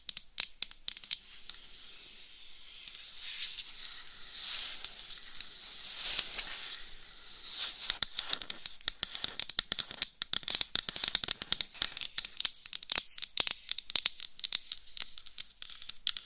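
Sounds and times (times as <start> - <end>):
dense irregular sharp taps and crackles: 0.0 - 1.6, 7.6 - 16.2
steady bright hiss: 1.0 - 9.4
soft scratching and rubbing: 1.1 - 9.9.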